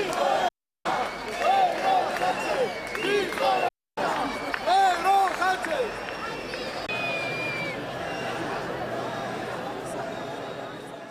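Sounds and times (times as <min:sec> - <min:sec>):
large crowd roaring: 0:00.0 - 0:11.0
shrill whistle: 0:02.2 - 0:08.4.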